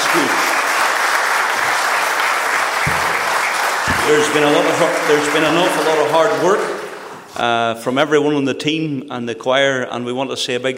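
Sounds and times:
applause: 0:00.0 - 0:07.4
speech: 0:00.1 - 0:00.4, 0:04.1 - 0:06.8, 0:07.4 - 0:10.7.

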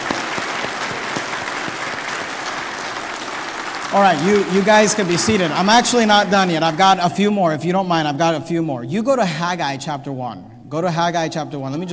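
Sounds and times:
audience applause: 0:00.0 - 0:07.2
speech: 0:03.9 - 0:11.9.

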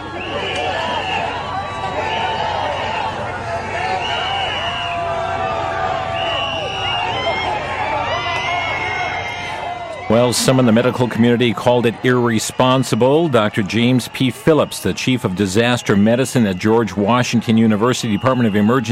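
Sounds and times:
crowd of well-wishers along the streets cheering and chattering: 0:00.0 - 0:18.9
laughter: 0:09.5 - 0:18.9
speech: 0:10.1 - 0:18.9.

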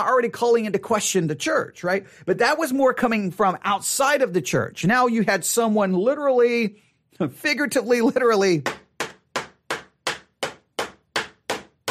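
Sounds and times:
speech: 0:00.0 - 0:08.8
hammer striking a nail into a church door: 0:08.6 - 0:11.9.

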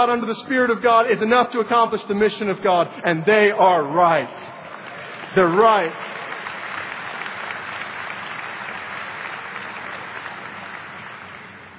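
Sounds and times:
speech: 0:00.0 - 0:04.6, 0:05.3 - 0:06.2
large group clapping: 0:04.4 - 0:11.7.

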